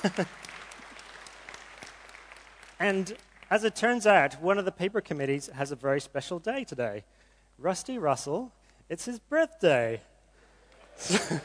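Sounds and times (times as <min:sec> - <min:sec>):
speech: 0:00.0 - 0:00.5, 0:02.8 - 0:10.1, 0:11.0 - 0:11.4
conference audience clapping for the paper committee: 0:00.0 - 0:04.4.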